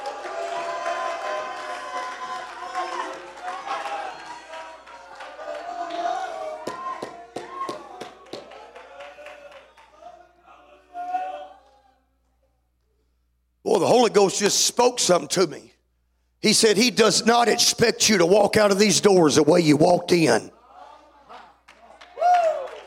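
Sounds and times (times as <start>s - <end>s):
audience shouting and cheering: 0.0s - 12.0s, 20.7s - 22.8s
speech: 13.8s - 15.8s, 16.4s - 20.5s.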